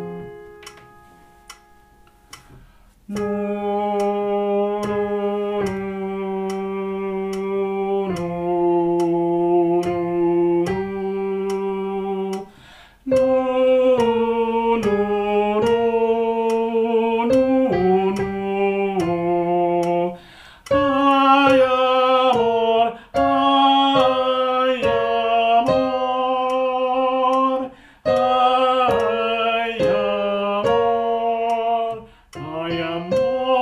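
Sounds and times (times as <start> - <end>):
soprano singing: 3.1 - 33.6.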